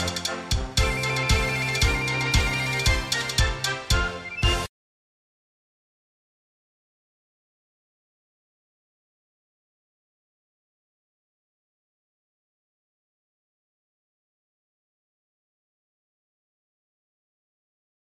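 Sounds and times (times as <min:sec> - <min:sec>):
music beat: 0:00.0 - 0:04.7.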